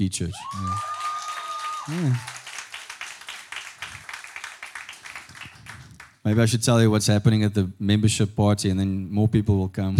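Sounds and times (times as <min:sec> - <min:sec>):
speech: 0:00.0 - 0:00.9, 0:01.8 - 0:02.4, 0:06.3 - 0:09.9
audience applause: 0:00.4 - 0:06.2.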